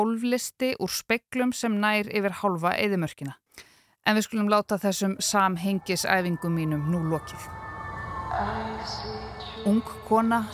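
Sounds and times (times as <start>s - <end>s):
speech: 0.0s - 7.6s, 8.3s - 10.5s
city sirens wailing: 5.2s - 10.5s.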